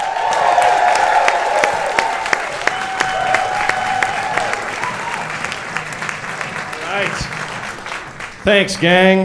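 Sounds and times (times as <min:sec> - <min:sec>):
whoops and cheers: 0:00.0 - 0:05.9
audience applause: 0:00.0 - 0:09.2
speech: 0:08.4 - 0:09.2.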